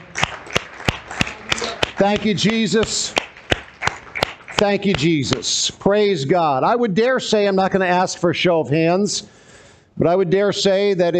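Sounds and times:
soft crowd noise: 0:00.0 - 0:05.4
audience clapping hands in a steady rhythm: 0:00.0 - 0:05.6
speech: 0:02.0 - 0:03.3, 0:04.6 - 0:09.4, 0:10.0 - 0:11.1.

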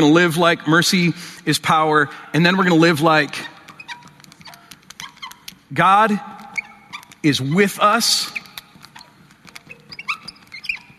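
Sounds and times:
speech: 0:00.0 - 0:03.5, 0:05.7 - 0:06.3, 0:07.2 - 0:08.4
squeaky marker writing on a board: 0:02.6 - 0:10.9.

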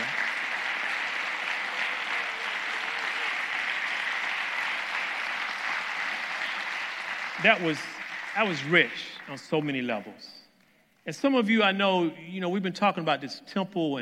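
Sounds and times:
audience applause: 0:00.0 - 0:10.1
speech: 0:07.4 - 0:10.4, 0:11.1 - 0:14.0.

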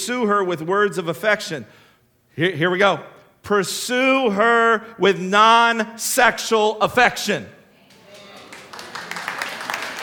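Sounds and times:
speech: 0:00.0 - 0:01.8, 0:02.4 - 0:07.6
faint murmur of voices: 0:07.7 - 0:09.3
audience of women clapping: 0:07.9 - 0:10.0.

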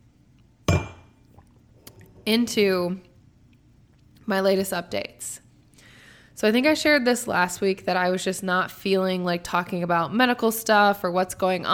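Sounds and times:
wine glass clinking while being handled: 0:00.7 - 0:01.2
speech: 0:02.3 - 0:03.1, 0:04.3 - 0:05.4, 0:06.4 - 0:11.7.

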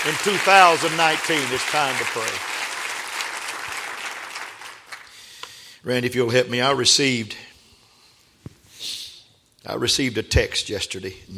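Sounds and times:
audience clapping: 0:00.0 - 0:05.6
speech: 0:00.1 - 0:02.6, 0:05.8 - 0:07.5, 0:09.6 - 0:11.3.

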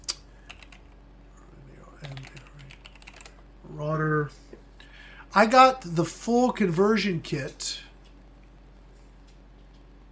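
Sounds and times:
person typing on a computer keyboard: 0:00.5 - 0:00.9, 0:02.0 - 0:03.3
speech: 0:03.8 - 0:04.5, 0:05.3 - 0:07.8.

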